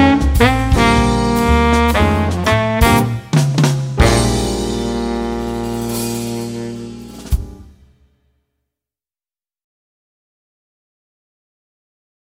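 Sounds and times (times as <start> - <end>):
jazz baritone saxophone solo: 0.0 - 7.7.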